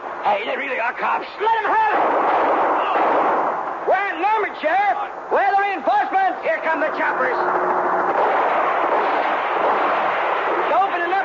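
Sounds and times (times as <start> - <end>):
speech: 0.2 - 8.6
gunfire barrage: 1.6 - 4.0, 6.8 - 11.2.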